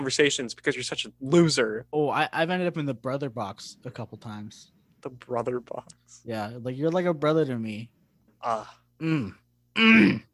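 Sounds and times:
speech: 0.0s - 10.3s
person groaning: 8.4s - 10.3s.

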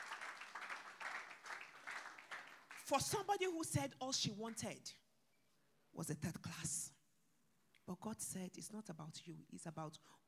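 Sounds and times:
crowd clapping: 0.0s - 3.4s
speech: 2.9s - 5.0s, 6.0s - 7.0s, 7.9s - 10.2s.

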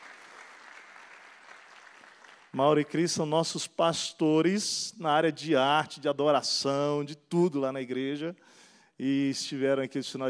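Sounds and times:
audience clapping: 0.0s - 3.2s
speech: 2.6s - 10.2s.

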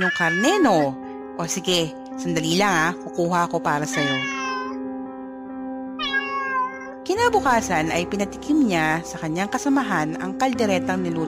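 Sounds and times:
cat meowing at a window: 0.0s - 1.0s, 3.9s - 4.8s, 6.0s - 7.0s
speech: 0.0s - 4.4s, 7.2s - 11.2s.

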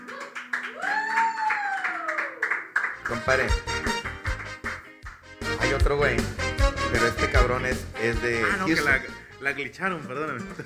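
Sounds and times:
applause: 0.0s - 5.3s
speech: 3.1s - 4.0s, 5.6s - 10.6s.

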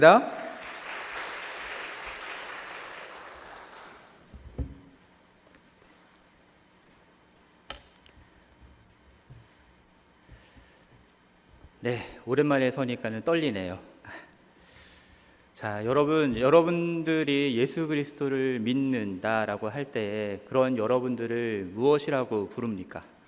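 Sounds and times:
speech: 0.0s - 0.4s, 11.8s - 14.2s, 15.6s - 23.1s
crowd applauding: 0.0s - 4.3s.

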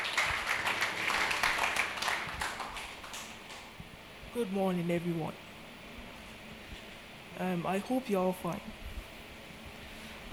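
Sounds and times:
audience clapping: 0.0s - 3.8s
speech: 4.4s - 5.5s, 7.4s - 8.8s.

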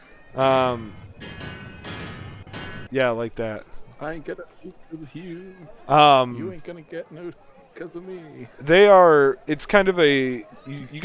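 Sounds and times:
speech: 0.4s - 1.4s, 2.9s - 11.0s
pots banged together: 0.4s - 2.9s.

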